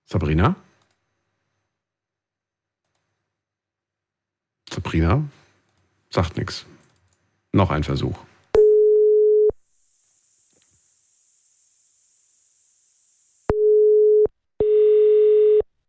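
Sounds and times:
speech: 0:00.1 - 0:00.6, 0:05.0 - 0:05.4, 0:06.1 - 0:06.8, 0:07.6 - 0:08.3
telephone ringback tone on a call: 0:08.6 - 0:09.5, 0:13.5 - 0:15.6.

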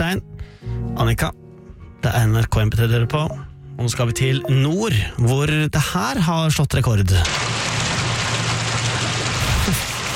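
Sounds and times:
speech: 0:00.0 - 0:01.4, 0:02.0 - 0:07.7, 0:09.7 - 0:09.9
water rain: 0:07.1 - 0:10.1.

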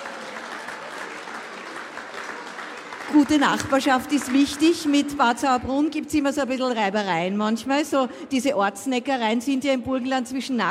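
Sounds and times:
applause: 0:00.0 - 0:05.5
speech: 0:03.1 - 0:10.6.

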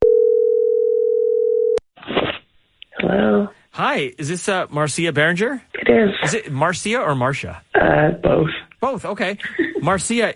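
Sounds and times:
telephone call ring tone: 0:00.0 - 0:01.8
speech: 0:03.0 - 0:10.3.

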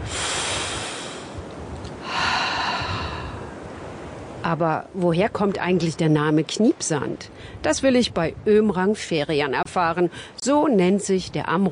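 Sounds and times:
deep breath in and out: 0:00.0 - 0:01.4, 0:02.0 - 0:03.6
speech: 0:04.5 - 0:11.7.

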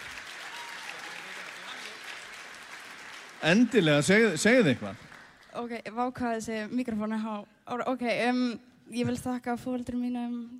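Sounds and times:
audience applause for a singer at an Icelandic performance contest: 0:00.0 - 0:05.5
speech: 0:03.4 - 0:10.5.

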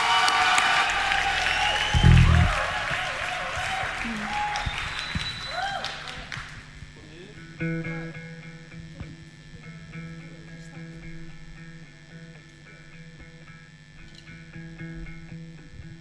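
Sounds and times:
audience applause at the Músíktilraunir 2025 band contest: 0:00.0 - 0:06.6.

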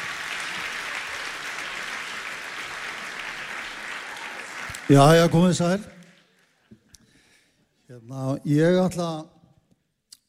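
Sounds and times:
audience applause for a speaker coming on stage: 0:00.0 - 0:06.6
speech: 0:04.9 - 0:06.0, 0:08.0 - 0:09.3.

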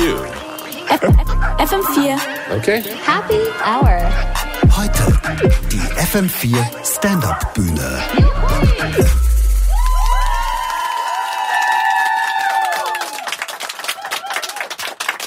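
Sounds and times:
speech: 0:00.9 - 0:09.2
audience cheering: 0:08.4 - 0:15.2.

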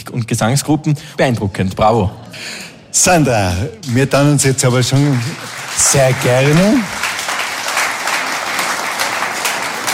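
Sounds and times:
speech: 0:00.0 - 0:07.0
audience applause: 0:03.8 - 0:09.9.

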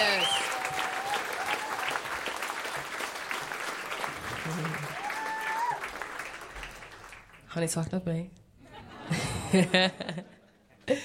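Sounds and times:
audience applause: 0:00.0 - 0:07.5
speech: 0:07.6 - 0:08.4, 0:09.1 - 0:11.0
laughter: 0:08.6 - 0:11.0.

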